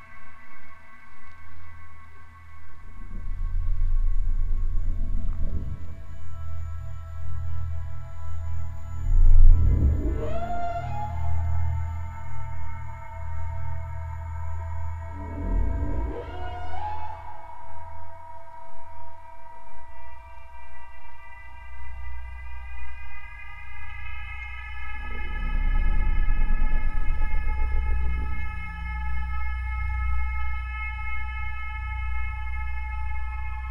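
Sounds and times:
ambient music: 0.0 - 33.6.

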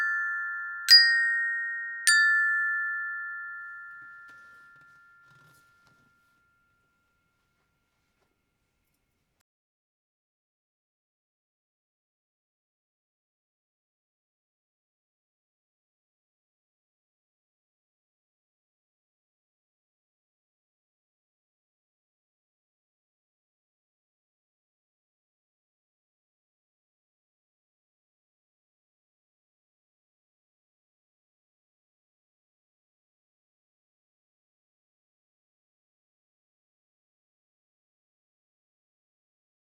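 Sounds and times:
glockenspiel: 0.0 - 8.0.

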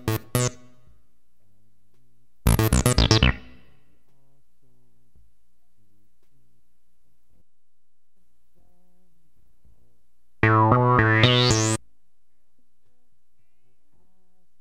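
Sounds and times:
synth: 0.0 - 0.6, 2.5 - 3.6, 10.4 - 11.8.

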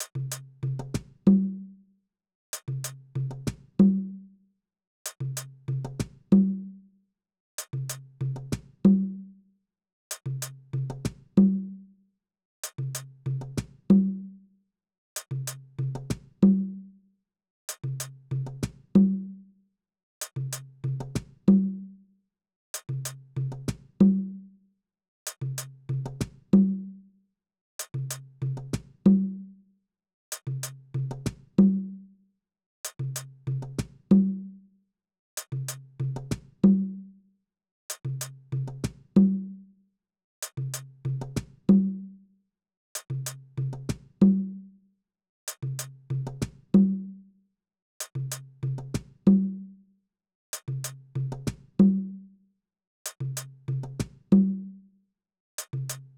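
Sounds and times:
percussion: 0.0 - 1.8, 2.5 - 4.2, 5.0 - 6.8, 7.6 - 9.4, 10.1 - 11.8, 12.6 - 14.4, 15.2 - 16.9, 17.7 - 19.4, 20.2 - 22.0, 22.8 - 24.5, 25.3 - 27.0, 27.8 - 29.6, 30.3 - 32.1, 32.8 - 34.6, 35.4 - 37.2, 37.9 - 39.7, 40.4 - 42.2, 43.0 - 44.7, 45.5 - 47.3, 48.0 - 49.8, 50.5 - 52.3, 53.0 - 54.8, 55.6 - 56.1.

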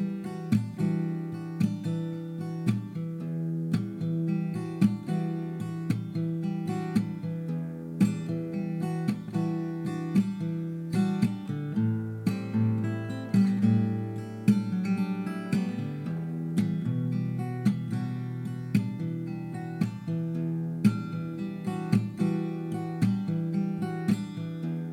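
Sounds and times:
acoustic guitar chords in E minor: 0.0 - 24.9.

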